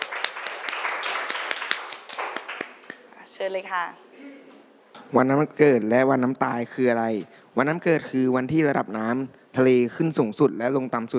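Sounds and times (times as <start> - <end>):
classroom applause: 0.0 - 3.0
speech: 3.4 - 4.3, 5.1 - 11.1.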